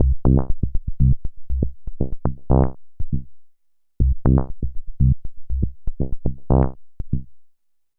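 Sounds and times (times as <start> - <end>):
proto-techno bassline: 0.0 - 3.2, 4.0 - 7.3.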